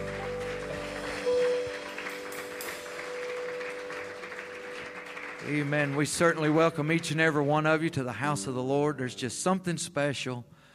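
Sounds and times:
audience hand clapping: 0.0 - 8.1
speech: 5.5 - 10.6.

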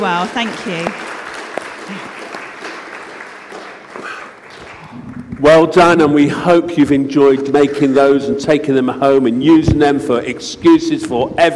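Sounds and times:
speech: 0.0 - 1.1, 1.9 - 2.2, 5.4 - 11.5
people clapping: 0.0 - 6.2, 7.5 - 8.6.

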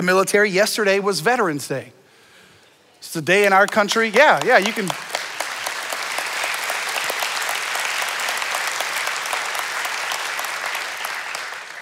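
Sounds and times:
speech: 0.0 - 2.0, 3.0 - 5.1
large audience applause: 3.4 - 11.8.

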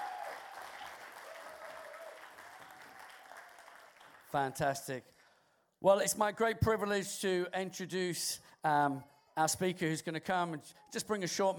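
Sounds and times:
round of applause: 0.0 - 5.4
speech: 4.3 - 5.2, 5.8 - 11.5.

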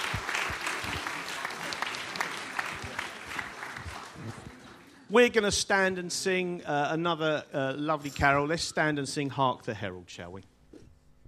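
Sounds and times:
crowd applause for children: 0.0 - 5.1
speech: 5.1 - 10.5.

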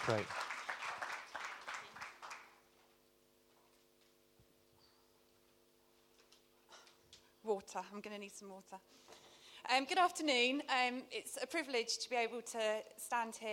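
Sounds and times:
speech: 0.0 - 0.4, 7.5 - 13.5
audience applause: 0.0 - 2.6.

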